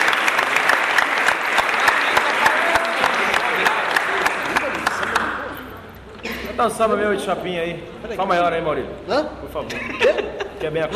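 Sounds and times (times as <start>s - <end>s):
audience applause: 0.0s - 5.6s
speech: 6.6s - 10.9s.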